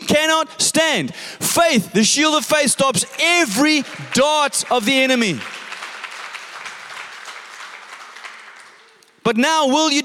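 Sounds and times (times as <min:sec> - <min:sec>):
speech: 0:00.1 - 0:05.6, 0:09.3 - 0:10.0
crowd applause: 0:02.9 - 0:09.2.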